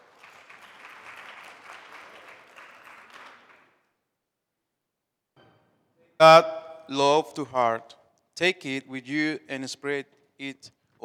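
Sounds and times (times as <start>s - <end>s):
crowd clapping: 0.0s - 4.0s
speech: 6.2s - 11.0s.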